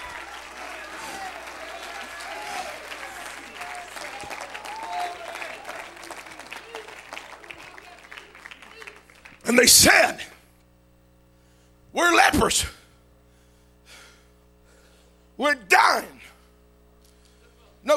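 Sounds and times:
large audience shouting: 0.0 - 9.1
large audience clapping: 0.0 - 10.4
speech: 9.5 - 10.3, 12.0 - 12.8.

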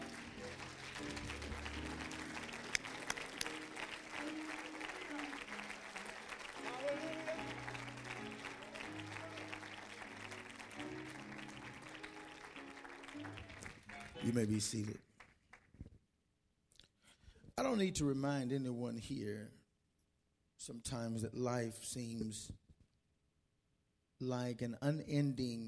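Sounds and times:
audience clapping hands: 0.0 - 15.9
speech: 14.3 - 15.0, 17.8 - 19.6, 20.7 - 22.6, 24.2 - 25.6.

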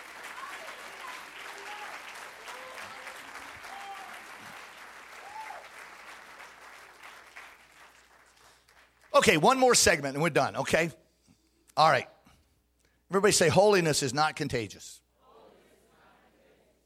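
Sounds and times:
audience clapping hands: 0.0 - 10.0
voices and faint cheers: 0.2 - 4.6, 5.2 - 5.7
speech: 9.2 - 11.0, 11.8 - 12.1, 13.1 - 15.0.

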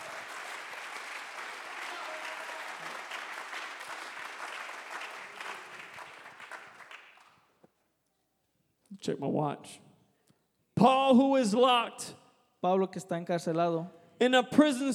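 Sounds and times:
audience clapping hands: 0.0 - 7.6
speech: 9.0 - 9.8, 10.8 - 14.9.

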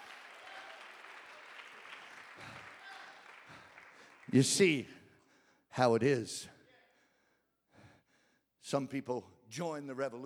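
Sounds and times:
audience applause: 0.0 - 4.9
speech: 4.3 - 5.0, 5.8 - 6.6, 8.7 - 10.2.

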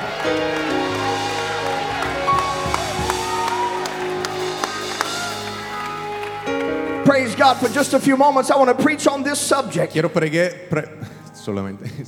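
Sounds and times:
audience applauding and clapping hands: 0.0 - 7.8
speech: 7.1 - 12.0.

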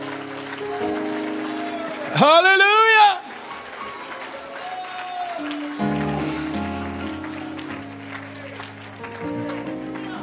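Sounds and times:
audience clapping hands: 0.0 - 10.2
speech: 2.2 - 2.8.

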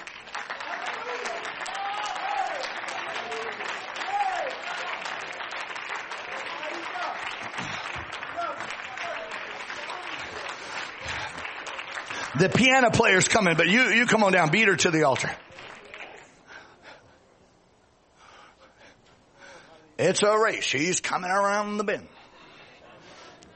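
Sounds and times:
audience clapping hands: 0.0 - 16.6
speech: 12.4 - 15.4, 20.0 - 22.2.

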